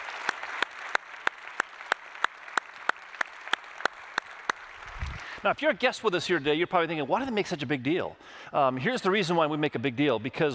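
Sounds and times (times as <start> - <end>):
audience applause: 0.0 - 5.8
speech: 5.4 - 10.5.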